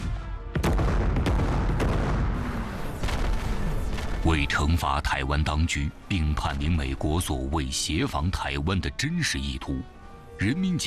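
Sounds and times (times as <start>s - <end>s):
massed artillery barrage: 0.6s - 4.6s
speech: 4.2s - 10.8s.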